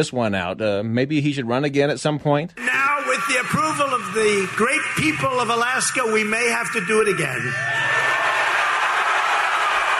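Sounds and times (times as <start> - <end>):
speech: 0.0 - 7.9
large rally crowd cheering and roaring: 2.6 - 9.9.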